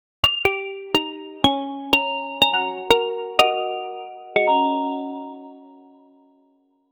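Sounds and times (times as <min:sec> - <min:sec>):
amateurishly composed music: 0:00.3 - 0:05.5.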